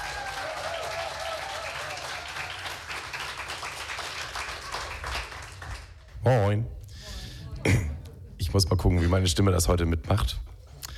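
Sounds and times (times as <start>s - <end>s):
audience applause: 0.0s - 6.1s
speech: 6.3s - 6.8s, 8.5s - 10.5s.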